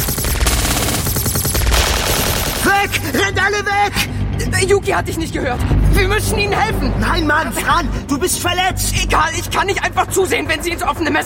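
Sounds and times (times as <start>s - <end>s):
automatic gunfire: 0.0s - 3.1s
speech: 2.8s - 11.2s.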